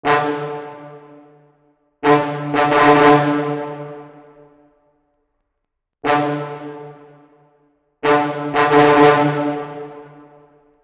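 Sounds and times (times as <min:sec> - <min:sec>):
brass ostinato: 0:00.0 - 0:01.4, 0:02.0 - 0:04.5, 0:06.0 - 0:07.3, 0:08.0 - 0:10.4.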